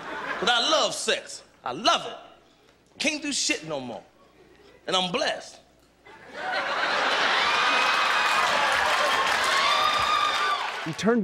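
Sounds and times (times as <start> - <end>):
laughter: 0.0 - 0.9, 6.0 - 10.0
speech: 0.4 - 2.3, 3.0 - 4.1, 4.8 - 5.6, 6.3 - 6.8, 10.8 - 11.2
raucous audience applause after comedy set: 6.9 - 11.2.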